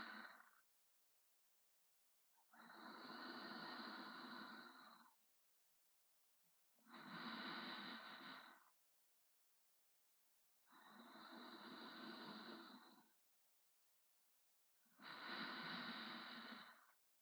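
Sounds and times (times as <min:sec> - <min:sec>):
person breathing in sleep, recorded from the front: 0:00.0 - 0:00.6, 0:02.6 - 0:05.2, 0:06.9 - 0:08.7, 0:10.8 - 0:13.1, 0:15.0 - 0:16.9.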